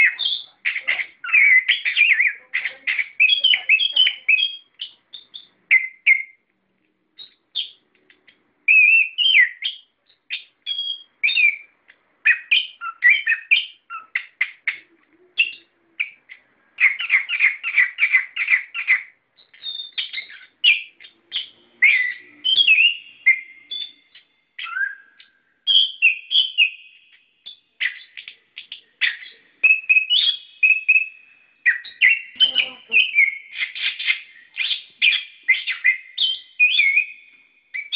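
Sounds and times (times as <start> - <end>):
bird singing: 0.0 - 6.5, 7.1 - 37.9.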